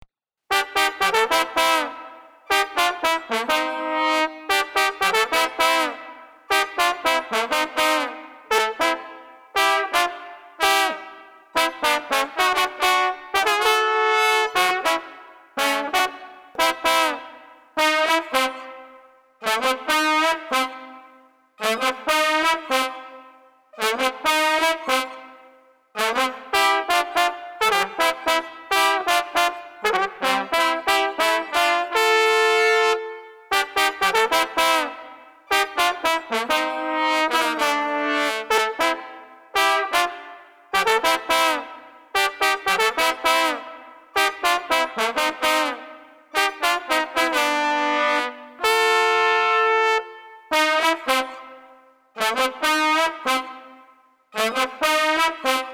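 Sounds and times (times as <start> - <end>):
festive street trombones playing: 0.5 - 55.7.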